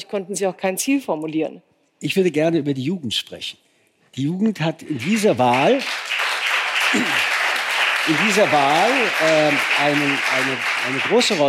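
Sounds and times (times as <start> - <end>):
speech: 0.1 - 3.6, 4.2 - 6.0, 6.9 - 7.3, 8.0 - 11.4
audience applause at a political discussion: 4.9 - 11.4.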